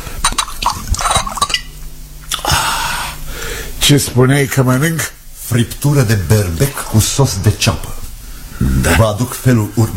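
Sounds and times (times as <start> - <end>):
drinking glass being refilled: 0.2 - 1.8
speech: 3.9 - 8.0, 8.6 - 9.9.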